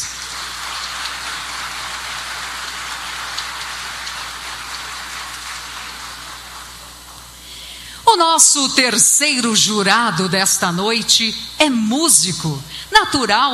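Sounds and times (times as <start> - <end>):
audience applause: 0.0 - 7.5
speech: 8.2 - 13.5.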